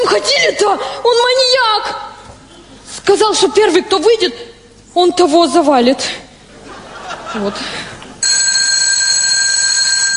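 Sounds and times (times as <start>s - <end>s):
speech: 0.1s - 2.1s, 3.1s - 6.3s, 7.3s - 7.9s
laughter: 6.5s - 8.2s
electronic school bell ringing: 8.2s - 10.1s.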